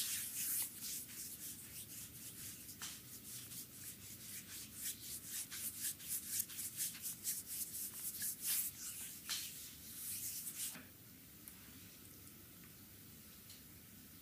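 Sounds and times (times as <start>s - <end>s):
hands rubbing an oiled belly in a stomach massage: 0.0s - 10.8s
faint hiss: 0.0s - 14.2s.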